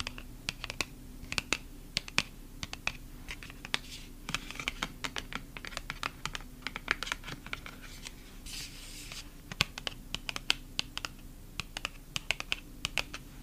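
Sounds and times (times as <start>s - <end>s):
faint steady low hum: 0.0s - 13.4s
fingernails tapping on photocards: 0.0s - 13.4s
scratchy rustle: 7.7s - 9.3s.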